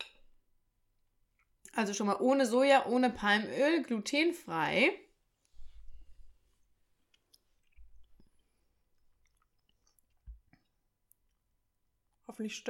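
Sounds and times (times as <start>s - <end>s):
speech: 1.8s - 5.0s, 12.3s - 12.6s
people chewing while taste-testing new vegan products: 6.6s - 11.5s.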